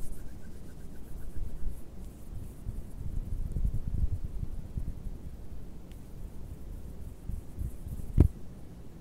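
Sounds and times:
dishwashing gloves rubbing and scratching on microphone: 0:00.0 - 0:04.6, 0:06.0 - 0:08.3.

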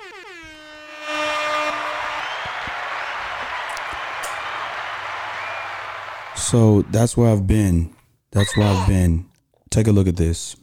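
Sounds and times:
applause: 0:01.7 - 0:06.9
speech: 0:06.5 - 0:10.6.

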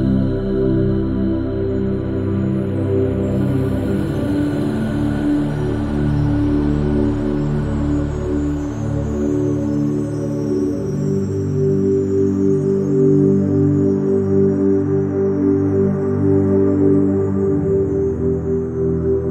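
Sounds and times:
low layered sustained binaural beat tones: 0:00.0 - 0:19.3.

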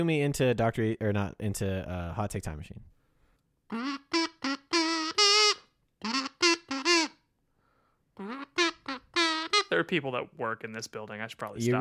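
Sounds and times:
speech: 0:00.0 - 0:02.9, 0:03.7 - 0:04.0, 0:09.8 - 0:11.7
kazoo playing a buzzy tune: 0:03.7 - 0:07.3, 0:08.2 - 0:09.9.

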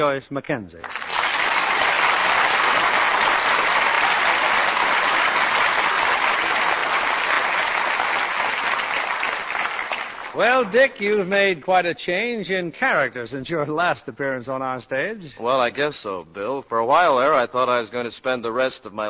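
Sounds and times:
speech: 0:00.0 - 0:01.1, 0:10.4 - 0:19.0
audience applause: 0:00.8 - 0:11.1.

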